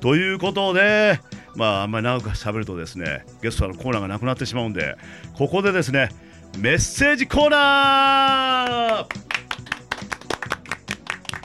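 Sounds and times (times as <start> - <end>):
speech: 0.0 - 9.4
studio audience applause: 8.9 - 11.4.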